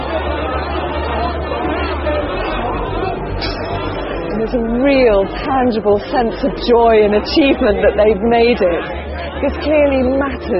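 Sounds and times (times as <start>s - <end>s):
crowd chatter at midnight temple offering: 0.0s - 10.5s
speech: 4.4s - 10.5s.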